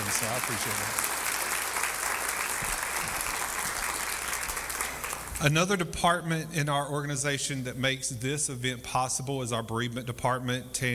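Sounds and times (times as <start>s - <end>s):
audience clapping: 0.0s - 5.5s
speech: 0.2s - 1.2s, 5.4s - 10.9s.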